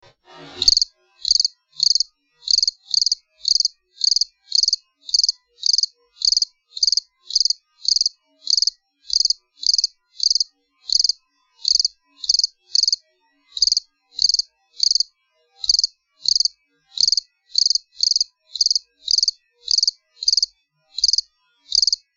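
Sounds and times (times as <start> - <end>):
garden cricket chirping: 0.6 - 13.0, 13.6 - 22.1.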